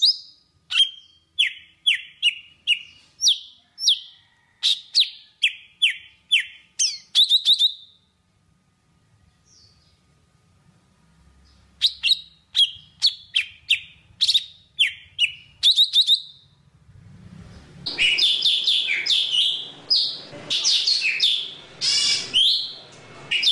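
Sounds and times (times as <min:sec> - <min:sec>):
Java sparrow singing: 0:00.0 - 0:04.1, 0:04.7 - 0:08.0, 0:11.8 - 0:16.5, 0:17.9 - 0:23.5.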